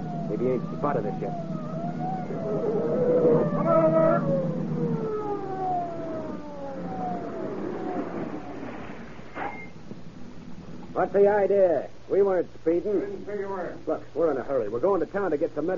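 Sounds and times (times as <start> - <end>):
police motorcycle siren wailing: 0.0 - 9.2
speech: 0.3 - 1.7, 2.3 - 2.9, 11.0 - 15.7.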